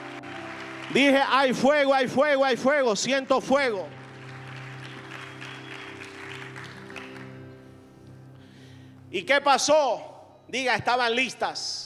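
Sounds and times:
audience applause: 0:00.0 - 0:02.0, 0:03.8 - 0:07.5
speech: 0:00.9 - 0:04.0, 0:09.2 - 0:11.8.

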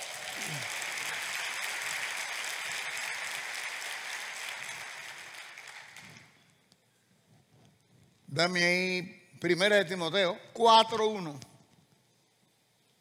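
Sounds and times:
audience applause: 0:00.0 - 0:06.4
speech: 0:08.4 - 0:11.5.

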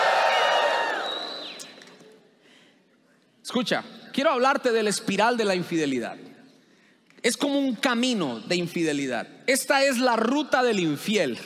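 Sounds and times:
audience shouting for joy: 0:00.0 - 0:01.4
speech: 0:03.5 - 0:06.3, 0:07.2 - 0:11.4.

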